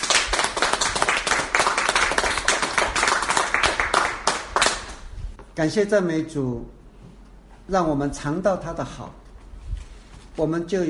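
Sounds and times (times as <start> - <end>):
audience clapping: 0.0 - 5.0
speech: 5.6 - 6.8, 7.7 - 9.2, 10.4 - 10.8.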